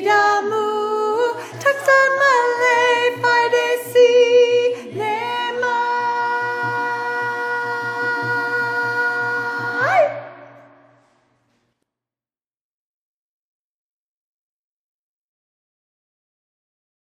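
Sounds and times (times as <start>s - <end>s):
soprano singing: 0.0s - 10.8s.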